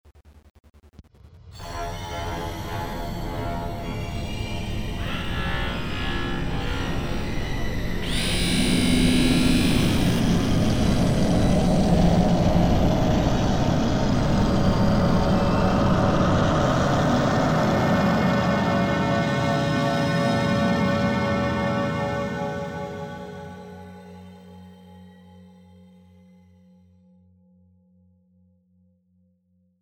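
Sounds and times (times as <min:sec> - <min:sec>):
horror sting: 0:01.3 - 0:24.2.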